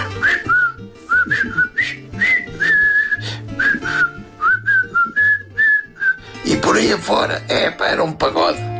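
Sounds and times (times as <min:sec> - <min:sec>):
whistled march melody from film soundtrack: 0:00.0 - 0:06.4
speech: 0:07.0 - 0:08.7.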